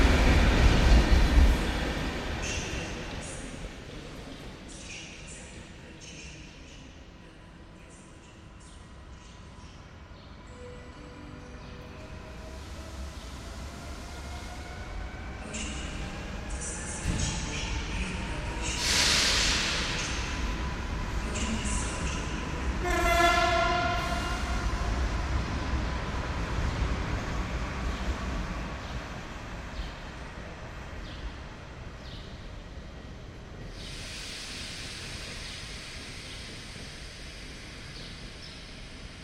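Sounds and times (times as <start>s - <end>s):
trains rumbling at Wroclaw train station platform: 0.0s - 6.8s, 7.6s - 39.2s
loud hiss: 18.6s - 20.4s, 33.8s - 39.2s.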